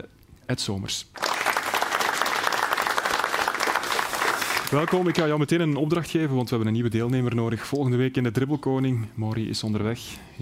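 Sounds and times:
speech: 0.0 - 1.2, 4.7 - 10.3
studio audience applause on a TV sports talk show: 1.2 - 5.4.

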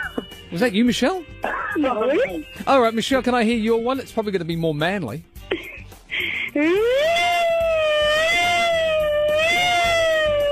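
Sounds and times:
speech: 0.5 - 5.3, 6.6 - 7.1
breathy hiss: 5.6 - 6.6
voice imitating a siren: 6.6 - 10.5.

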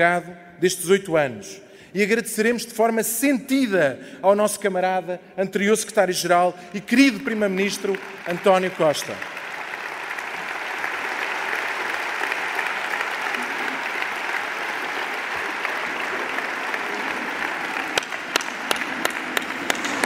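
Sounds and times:
speech: 0.0 - 9.4
congress audience applause for António Costa: 7.2 - 20.0.

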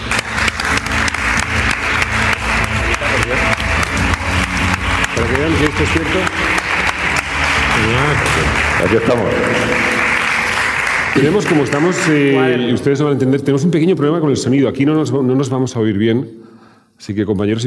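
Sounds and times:
audience applause: 0.0 - 12.8
speech: 5.7 - 6.6, 7.8 - 10.0, 11.2 - 17.6.

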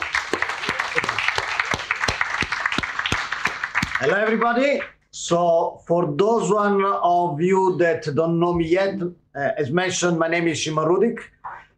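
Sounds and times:
audience round of applause: 0.0 - 4.6
speech: 4.0 - 11.4.

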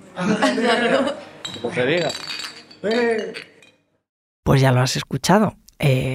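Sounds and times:
laughter: 0.1 - 1.4
speech: 0.2 - 3.5, 4.5 - 6.1
glasses clinking in a toast: 1.0 - 3.9.

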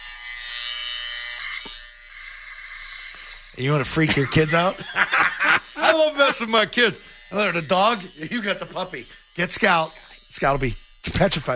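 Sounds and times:
electric shaver buzzing: 0.0 - 11.5
speech: 3.6 - 5.1, 6.0 - 11.5
laughter: 4.0 - 6.8.

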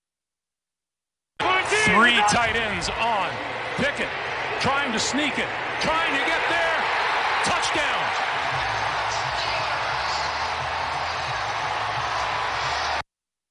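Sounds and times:
stadium crowd cheering: 1.4 - 13.0
speech: 2.0 - 6.7.

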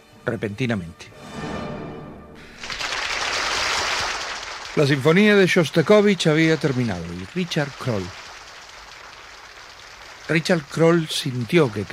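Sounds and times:
speech: 0.2 - 1.5, 4.8 - 8.2, 10.3 - 11.9
large concert audience applause: 2.4 - 11.9.

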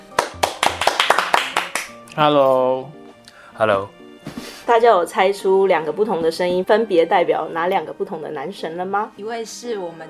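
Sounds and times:
applause: 0.0 - 2.0
speech: 2.2 - 3.0, 3.6 - 4.0, 4.7 - 10.0.

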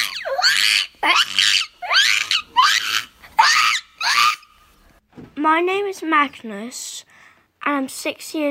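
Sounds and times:
child imitating a parrot with shrill raspy squawks: 0.0 - 4.6
speech: 0.6 - 1.6, 5.5 - 7.0, 7.7 - 8.4.

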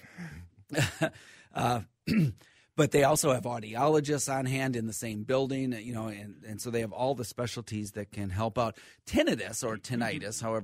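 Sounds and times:
speech: 0.2 - 10.6
person coughing: 0.7 - 2.5.

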